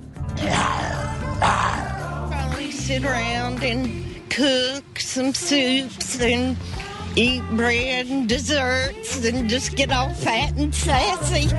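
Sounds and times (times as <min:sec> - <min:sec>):
person growling like a lion: 0:00.4 - 0:02.2
speech: 0:02.9 - 0:11.5.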